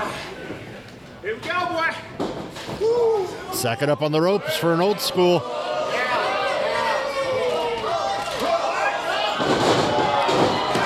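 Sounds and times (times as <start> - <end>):
steady crowd noise at a pro wrestling match: 0.0 - 10.8
speech: 1.2 - 5.7
commentators talking over the wrestling action: 3.5 - 6.1
wrestler landing a flip in a pro wrestling ring: 9.3 - 10.8.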